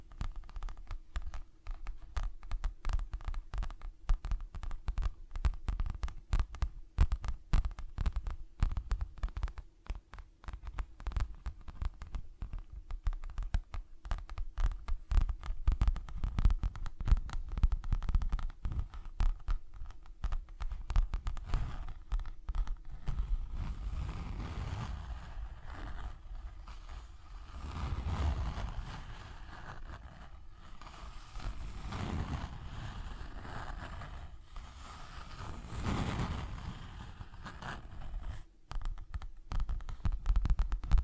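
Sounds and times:
low steady hum: 0.0 - 41.0
tapping and scratching: 0.0 - 41.0
rubbing: 15.4 - 38.9.

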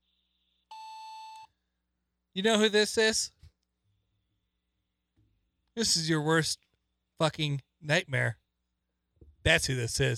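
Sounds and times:
voicemail beep: 0.7 - 1.5
speech: 2.4 - 3.4, 5.8 - 6.6, 7.2 - 8.4, 9.4 - 10.1.

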